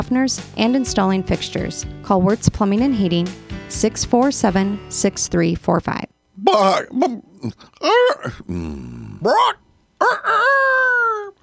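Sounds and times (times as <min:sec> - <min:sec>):
speech: 0:00.1 - 0:11.3
person imitating a rooster crowing: 0:07.8 - 0:11.4.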